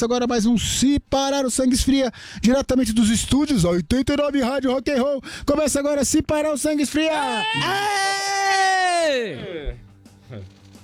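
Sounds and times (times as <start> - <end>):
speech: 0.0 - 8.3, 9.1 - 10.6
person screaming: 7.1 - 9.8
faint low thuds: 9.6 - 10.0.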